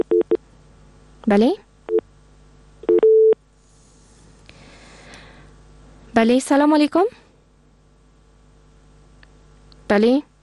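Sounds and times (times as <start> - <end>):
speech: 1.2 - 1.7, 6.2 - 7.2, 9.9 - 10.3
telephone busy tone after a dropped call-in line connection: 2.8 - 3.4.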